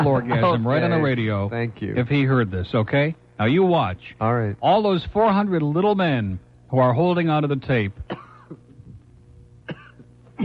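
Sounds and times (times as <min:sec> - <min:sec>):
speech: 0:00.0 - 0:08.6
person burping: 0:09.7 - 0:10.4.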